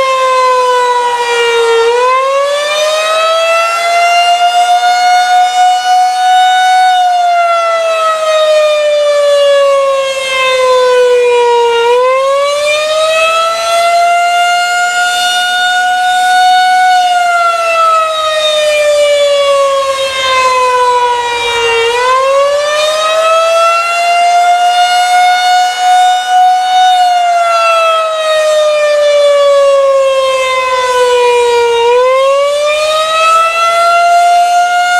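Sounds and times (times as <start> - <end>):
fire siren: 0.0 - 34.9.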